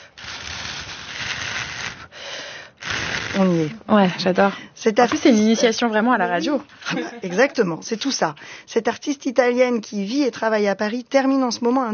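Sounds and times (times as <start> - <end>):
blowing steadily across thin paper strips: 0.0 - 3.8
speech: 3.4 - 11.9.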